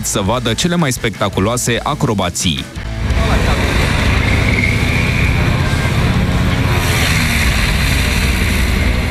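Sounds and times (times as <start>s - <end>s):
speech: 0.0s - 3.8s
aerobatic airplane engines running: 2.8s - 9.1s.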